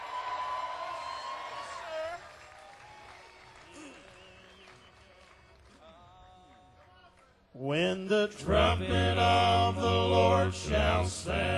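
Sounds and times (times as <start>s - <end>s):
audience applause and cheering welcoming a bass singer on stage: 0.0s - 6.4s
speech: 7.6s - 11.5s.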